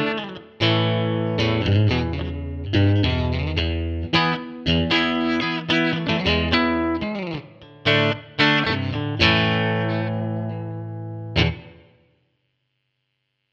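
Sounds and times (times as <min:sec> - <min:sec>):
clean electric guitar through a 4x10 bass amplifier with three 6K pickups: 0:00.0 - 0:12.0.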